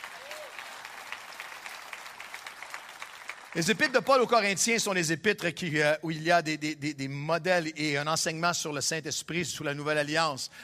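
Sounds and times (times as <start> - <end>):
audience applauding loudly: 0.0 - 4.7
speech: 3.6 - 10.6.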